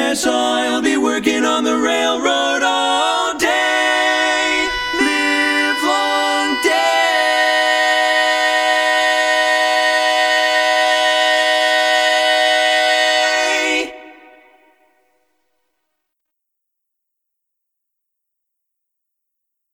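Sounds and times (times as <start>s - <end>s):
folk song without bass: 0.0s - 15.2s.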